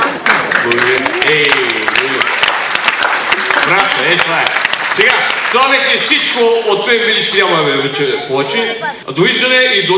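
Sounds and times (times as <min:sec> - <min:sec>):
crowd clapping: 0:00.0 - 0:07.6
speech: 0:00.7 - 0:01.6, 0:03.9 - 0:09.9.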